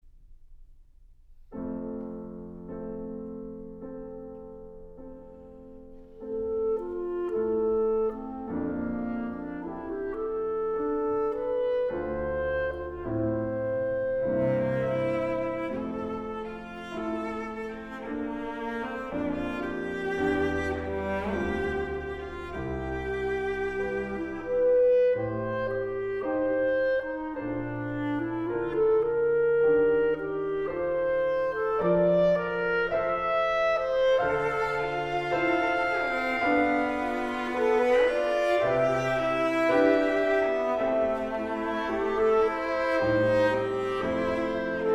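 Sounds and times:
piano trio andantino: 0:01.4 - 0:44.9.

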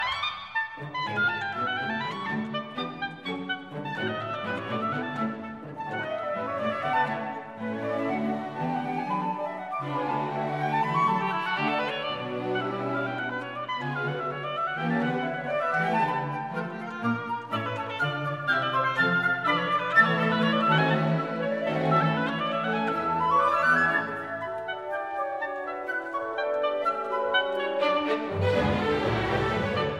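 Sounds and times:
oboe concerto: 0:00.0 - 0:29.9.

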